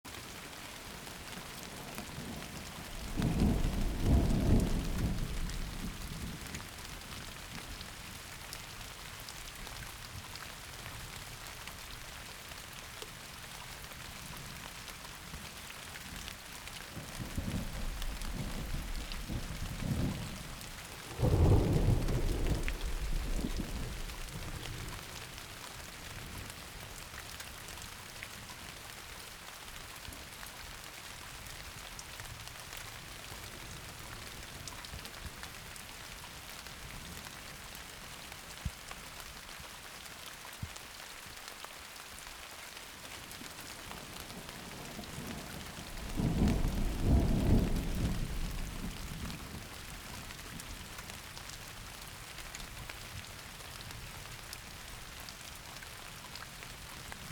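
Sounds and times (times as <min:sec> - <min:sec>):
thunderstorm: 0:01.1 - 0:07.4, 0:16.9 - 0:25.5, 0:43.8 - 0:50.9.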